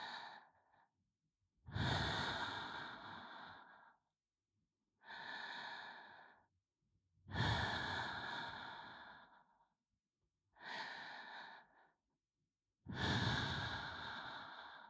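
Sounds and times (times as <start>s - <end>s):
binaural ASMR breathing in the right ear: 0.0s - 0.9s, 1.7s - 4.1s, 5.0s - 6.5s, 7.3s - 9.7s, 10.6s - 12.0s, 12.9s - 14.8s.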